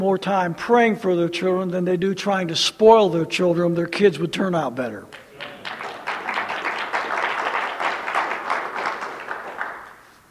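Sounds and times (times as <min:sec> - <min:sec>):
speech: 0:00.0 - 0:05.5
audience clapping: 0:05.1 - 0:10.2.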